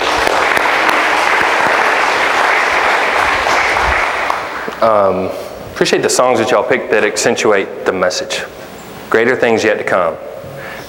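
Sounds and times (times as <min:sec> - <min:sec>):
audience clapping: 0:00.0 - 0:04.9
speech: 0:04.8 - 0:10.3.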